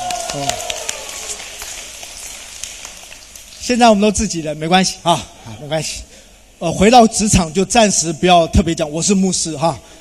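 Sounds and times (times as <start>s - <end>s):
audience clapping hands: 0.0s - 3.7s
speech: 0.3s - 0.7s, 3.7s - 9.9s.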